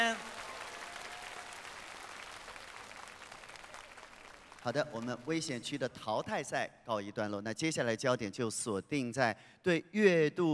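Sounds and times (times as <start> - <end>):
audience applause: 0.0 - 5.2
speech: 4.6 - 10.5.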